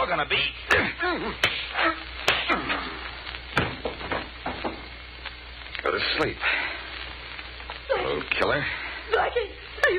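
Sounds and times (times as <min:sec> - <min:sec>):
speech: 0:00.0 - 0:02.0, 0:06.0 - 0:06.6, 0:08.3 - 0:09.9
punches landing in an old film fistfight: 0:00.7 - 0:02.8, 0:03.6 - 0:04.8.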